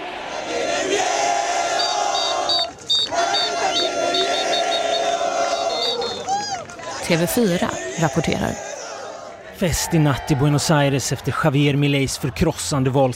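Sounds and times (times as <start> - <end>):
large crowd roaring: 0.0 - 10.6
high whistles: 1.8 - 6.3
speech: 7.1 - 8.7, 9.6 - 13.1.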